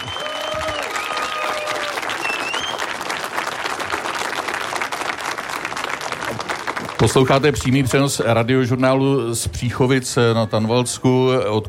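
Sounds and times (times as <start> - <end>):
audience applause: 0.0 - 8.0
speech: 7.0 - 11.6.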